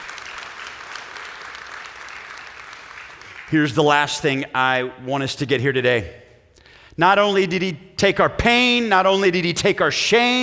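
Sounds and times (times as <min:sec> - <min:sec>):
audience applause: 0:00.0 - 0:03.6
speech: 0:03.5 - 0:06.2, 0:07.0 - 0:10.4.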